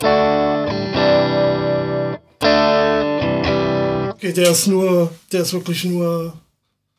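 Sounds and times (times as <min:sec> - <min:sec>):
electric guitar chords through boost pedal: 0:00.0 - 0:04.6
speech: 0:04.2 - 0:06.4.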